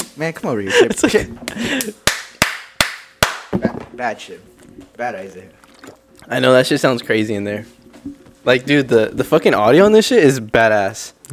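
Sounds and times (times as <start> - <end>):
speech: 0.2 - 2.1, 3.6 - 11.3
clapping: 1.5 - 3.5.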